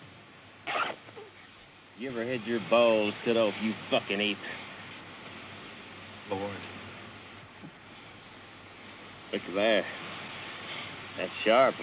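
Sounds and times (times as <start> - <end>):
trousers being unzipped: 0.6 - 1.4
speech: 2.0 - 4.6, 6.3 - 6.7, 9.5 - 10.0, 11.4 - 11.8.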